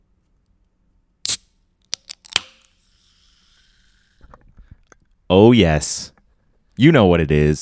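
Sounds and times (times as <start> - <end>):
can of sparkling lime water cracking open with a hiss: 1.2 - 4.3
speech: 5.3 - 6.1, 6.8 - 7.6.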